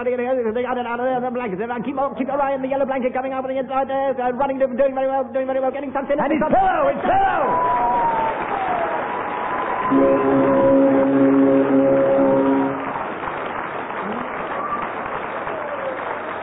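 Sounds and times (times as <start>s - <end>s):
speech: 0.0s - 7.9s, 9.9s - 10.9s
audience applause: 7.0s - 16.4s.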